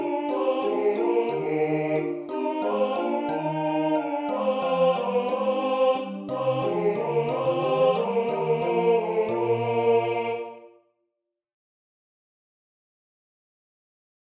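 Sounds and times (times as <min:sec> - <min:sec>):
tenor singing a Sanctus: 0:00.0 - 0:10.7.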